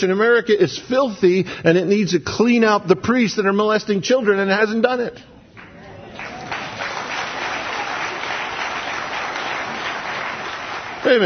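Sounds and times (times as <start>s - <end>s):
speech: 0.0s - 5.4s, 11.0s - 11.2s
audience clapping: 5.5s - 11.2s.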